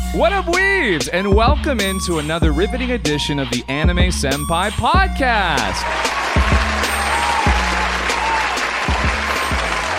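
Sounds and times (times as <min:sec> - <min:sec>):
speech: 0:00.2 - 0:06.2
crowd applause sound effect: 0:05.8 - 0:09.9.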